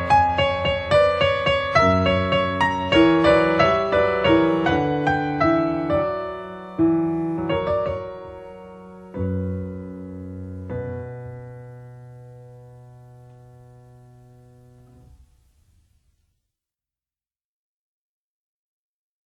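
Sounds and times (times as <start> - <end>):
baroque three-part invention in B minor: 0.0 - 14.8.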